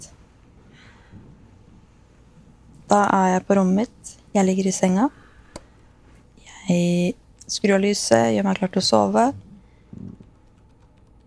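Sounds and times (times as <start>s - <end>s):
speech: 2.9s - 5.2s, 6.7s - 10.1s
typing on a computer keyboard: 10.0s - 11.2s.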